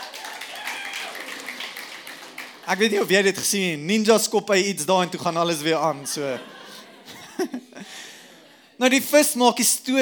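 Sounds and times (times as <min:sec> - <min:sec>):
audience clapping: 0:00.0 - 0:03.4
speech: 0:02.7 - 0:06.6, 0:07.4 - 0:08.1, 0:08.8 - 0:10.0
laughter: 0:05.7 - 0:08.8.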